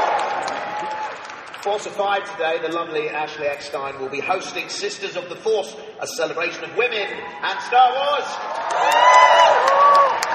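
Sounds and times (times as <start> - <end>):
crowd cheering, mostly women: 0.0 - 2.3, 7.2 - 10.3
speech: 1.6 - 9.2.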